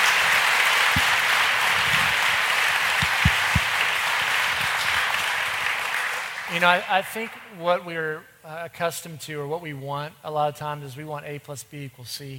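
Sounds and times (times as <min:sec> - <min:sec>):
crowd applauding: 0:00.0 - 0:07.6
speech: 0:06.5 - 0:12.3.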